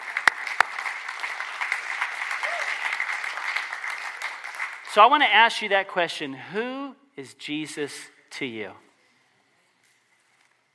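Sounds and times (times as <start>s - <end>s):
audience clapping: 0.0s - 5.0s
speech: 5.0s - 8.9s.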